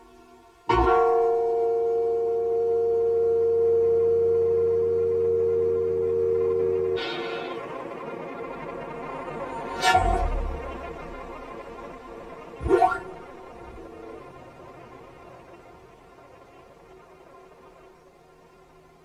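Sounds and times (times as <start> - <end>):
phasing reverb effect: 1.3 - 14.4.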